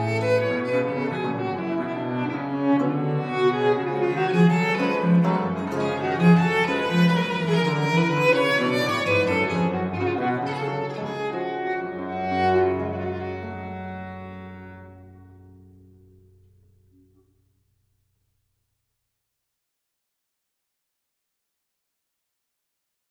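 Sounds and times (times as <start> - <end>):
concerto gavotte in G major: 0.0 - 16.4.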